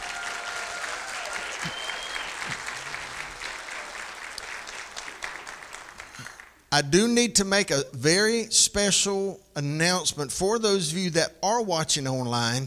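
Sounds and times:
church congregation applauding: 0.0s - 6.6s
speech: 6.8s - 12.6s.

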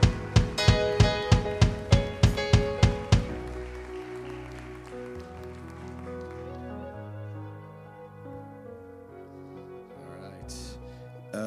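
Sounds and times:
audience hand clapping: 0.0s - 7.2s
sustained keyboard chords: 0.0s - 11.4s.

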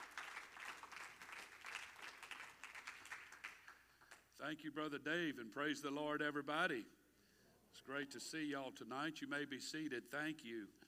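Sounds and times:
audience clapping hands: 0.0s - 4.3s
speech: 4.4s - 7.0s, 7.8s - 10.8s.

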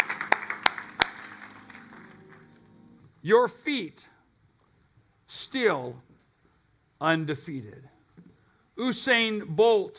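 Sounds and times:
audience hand claps: 0.0s - 2.5s
speech: 3.2s - 4.1s, 5.4s - 6.1s, 7.0s - 7.9s, 8.8s - 9.9s.

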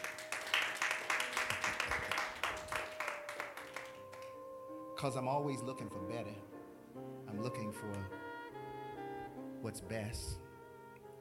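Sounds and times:
audience clapping hands: 0.0s - 4.4s
speech: 5.0s - 8.2s, 9.6s - 10.4s.

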